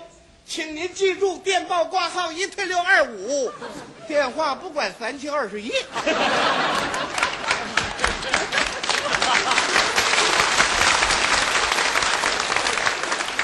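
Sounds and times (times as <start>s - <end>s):
speech: 0.5s - 7.2s
laughter: 3.3s - 4.3s, 5.7s - 11.0s
audience applause: 6.3s - 13.4s.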